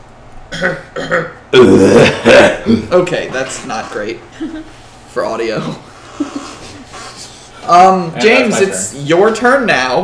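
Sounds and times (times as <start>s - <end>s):
person coughing: 0.5s - 2.9s
speech: 0.6s - 6.5s, 7.7s - 10.0s.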